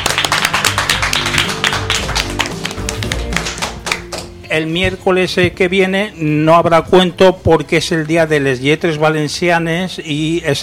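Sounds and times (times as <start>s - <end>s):
audience applause: 0.0s - 4.1s
speech: 4.5s - 10.6s.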